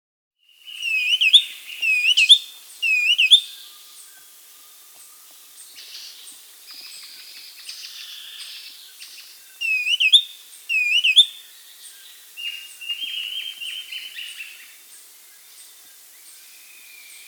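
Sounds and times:
black-capped becard song in the Amazon region of Peru: 0:00.7 - 0:03.5, 0:09.6 - 0:11.3.

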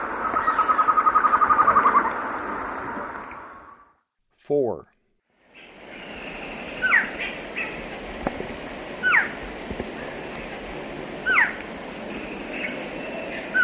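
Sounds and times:
Amazonian Antshrike calling: 0:00.1 - 0:02.8, 0:05.6 - 0:07.9, 0:09.0 - 0:09.4, 0:11.2 - 0:13.6.

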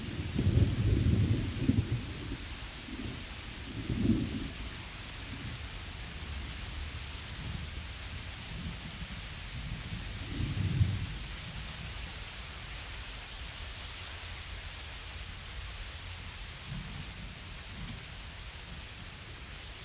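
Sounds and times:
thunderstorm out in the fields: 0:00.0 - 0:12.4, 0:16.2 - 0:19.6.

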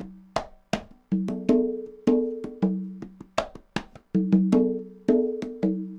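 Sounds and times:
Latin bongos: 0:00.0 - 0:05.9
Latin congas: 0:00.0 - 0:05.9.

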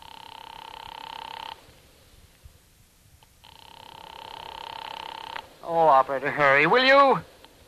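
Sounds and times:
telephone ringing tone heard over the line: 0:00.0 - 0:01.6, 0:03.4 - 0:05.4
speech: 0:05.7 - 0:07.3.

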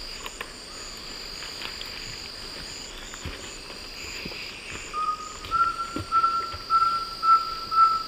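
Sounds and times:
rusty-belted tapaculo Liosceles thoracicus whistling: 0:04.9 - 0:08.0.

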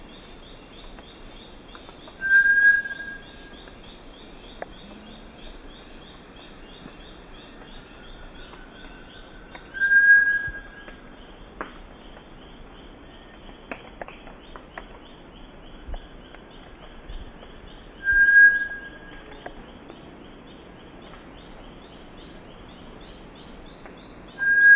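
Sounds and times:
Bartlett's tinamou song in the eastern lowlands of South America: 0:02.2 - 0:03.3, 0:09.8 - 0:10.9, 0:18.0 - 0:19.1, 0:24.4 - 0:24.7.

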